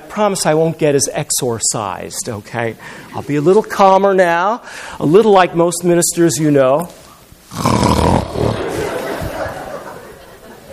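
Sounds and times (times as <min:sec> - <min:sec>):
speech: 0:00.2 - 0:08.2
snoring: 0:07.5 - 0:08.6
laughter: 0:08.2 - 0:10.7.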